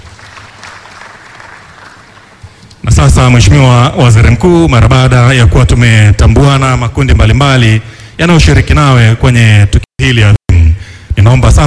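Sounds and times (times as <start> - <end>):
hall audience applause at a ceremony attended by the Prime Minister: 0.0 - 2.4
speech: 3.0 - 10.4, 11.2 - 11.6.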